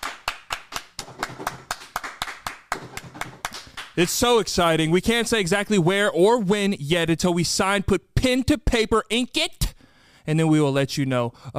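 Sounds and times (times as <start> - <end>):
round of applause, hands clapping: 0.0 - 4.4
speech: 4.0 - 9.6, 10.3 - 11.5.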